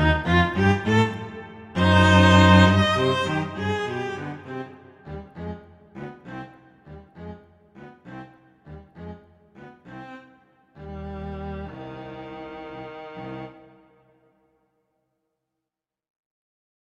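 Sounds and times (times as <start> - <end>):
violin playing a slow andante: 0.0 - 6.4, 10.8 - 14.0
cello playing a slow andante: 0.0 - 10.2, 10.8 - 14.0.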